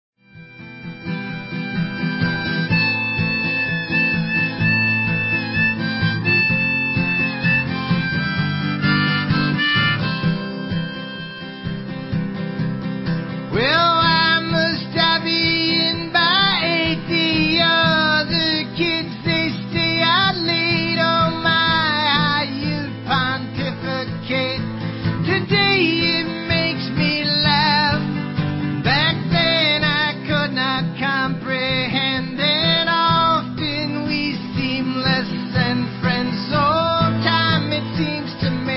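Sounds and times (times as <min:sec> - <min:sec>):
acoustic music: 0:00.2 - 0:38.7.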